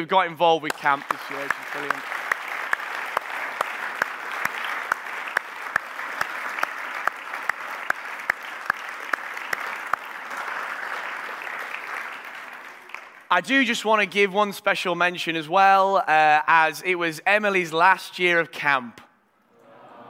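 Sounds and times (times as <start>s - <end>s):
speech: 0.0s - 2.2s, 13.3s - 19.0s
audience applause: 0.6s - 13.3s.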